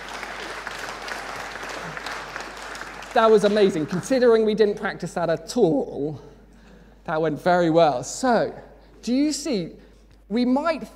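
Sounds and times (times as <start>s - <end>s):
audience applause for a volunteer: 0.0s - 4.3s
speech: 3.1s - 6.3s, 7.1s - 10.9s.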